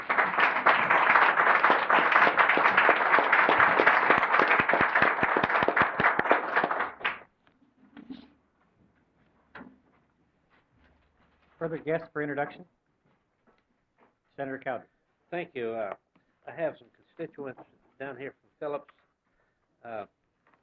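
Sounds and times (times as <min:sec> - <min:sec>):
audience in a legislative chamber applauding to welcome a deputy clerk: 0:00.0 - 0:07.4
speech: 0:11.7 - 0:12.8, 0:14.4 - 0:19.0, 0:19.8 - 0:20.2.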